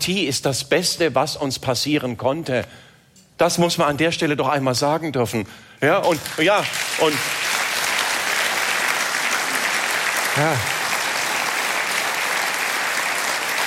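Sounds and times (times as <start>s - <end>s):
speech: 0.0s - 7.6s, 10.4s - 10.8s
audience applause: 6.1s - 13.6s.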